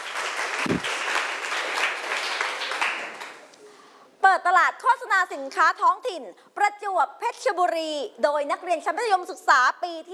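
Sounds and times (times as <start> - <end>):
group of students clapping in encouragement: 0.0 - 3.5
speech: 4.4 - 10.1.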